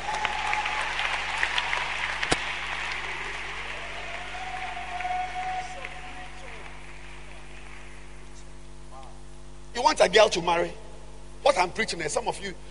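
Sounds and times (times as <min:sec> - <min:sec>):
audience applause: 0:00.0 - 0:08.3
speech: 0:09.8 - 0:10.8, 0:11.4 - 0:12.6.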